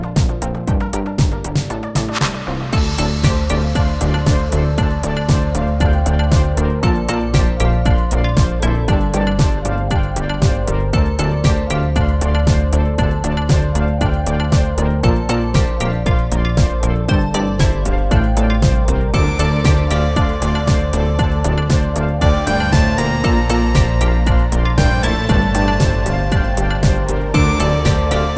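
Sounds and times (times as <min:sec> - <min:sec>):
Arturia MicroFreak synthesizer: 0:00.0 - 0:28.3.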